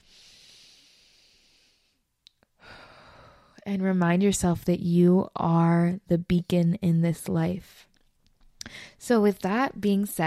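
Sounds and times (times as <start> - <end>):
person taking a deep breath during a guided meditation exercise: 0.0 - 3.6
speech: 3.7 - 7.9, 8.7 - 10.2.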